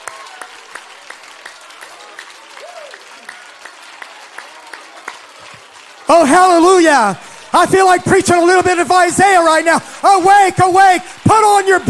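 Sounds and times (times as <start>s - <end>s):
audience applauding: 0.0s - 11.8s
speech: 6.1s - 11.8s.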